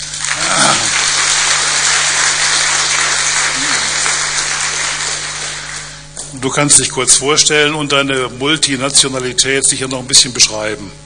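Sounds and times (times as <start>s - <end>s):
audience clapping: 0.0s - 6.3s
speech: 6.4s - 11.0s.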